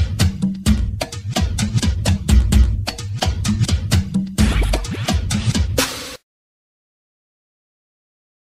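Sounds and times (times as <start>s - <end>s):
funk music: 0.0s - 6.2s.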